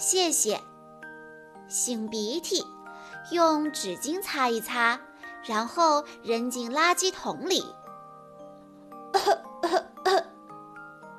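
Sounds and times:
speech: 0.0 - 0.7, 1.7 - 7.8
coughing: 9.1 - 10.4.

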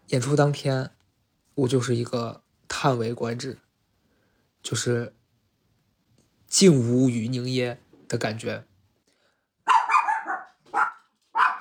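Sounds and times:
speech: 0.1 - 1.0, 1.6 - 3.6, 4.6 - 5.2, 6.5 - 8.7
pet dog barking angrily: 9.6 - 11.6.

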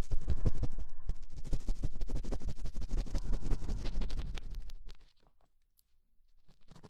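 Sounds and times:
rapid ear cleaning scratching and rubbing: 0.2 - 5.0.

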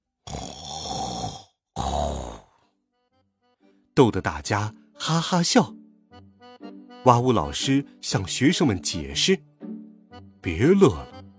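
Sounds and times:
loud rattling snoring: 0.2 - 2.6
speech: 4.0 - 5.8, 7.0 - 9.5, 10.4 - 11.1.

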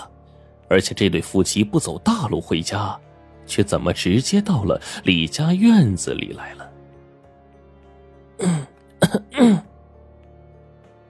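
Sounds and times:
speech: 0.7 - 6.7, 8.4 - 9.6
woman coughing heavily: 8.4 - 9.7.

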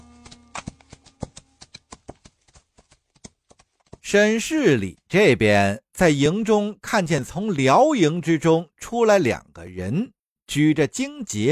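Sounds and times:
hooves of two horses walking slowly: 0.0 - 4.1
speech: 4.1 - 11.4.

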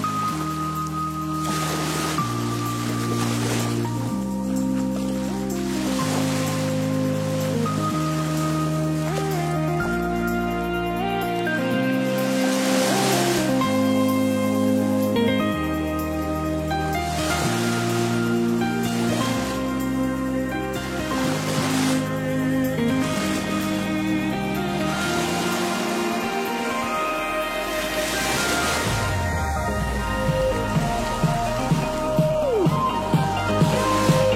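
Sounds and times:
ocean waves washing: 0.0 - 34.3
upbeat electronic music: 0.0 - 34.3.

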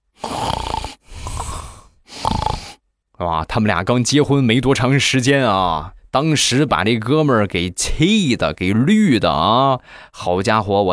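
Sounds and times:
person snoring: 0.1 - 2.8
speech: 3.2 - 10.9.

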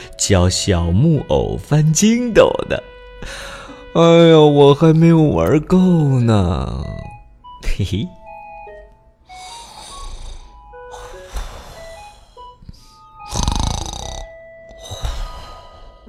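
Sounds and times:
speech: 0.2 - 8.2
loud rough snoring: 9.4 - 12.3, 13.2 - 16.0.

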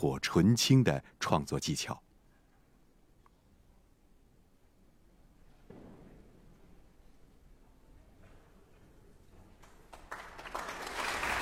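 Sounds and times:
speech: 0.0 - 2.0
concert audience applause: 9.6 - 11.4.

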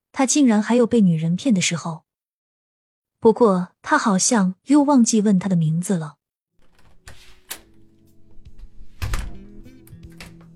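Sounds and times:
speech: 0.2 - 2.1, 3.2 - 6.2
door being opened: 6.6 - 10.5.

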